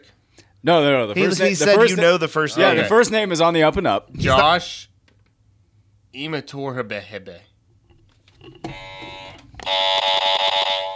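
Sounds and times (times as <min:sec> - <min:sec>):
speech: 0:00.6 - 0:04.9, 0:06.1 - 0:07.5
harsh raspy game buzzer being hit: 0:08.7 - 0:10.9.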